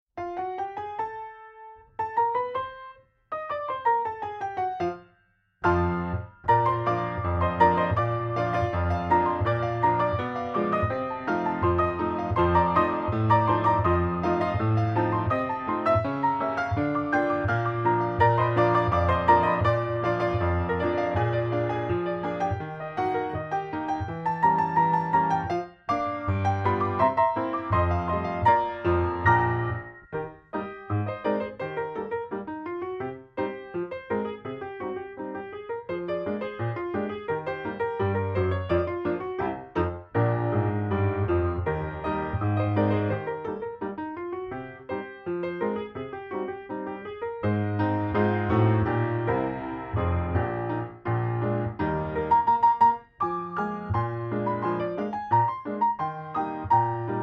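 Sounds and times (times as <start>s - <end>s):
piano: 0.0s - 57.2s.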